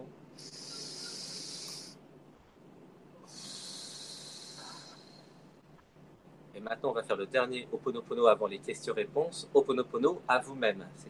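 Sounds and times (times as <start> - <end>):
slow breath: 0.4 - 2.0, 3.2 - 5.6
speech: 6.6 - 11.0.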